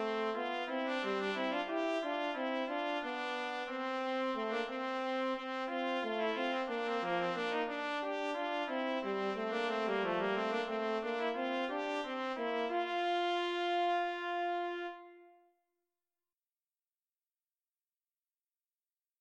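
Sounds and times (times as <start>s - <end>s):
passepied trumpet and horn duet: 0.0s - 15.4s.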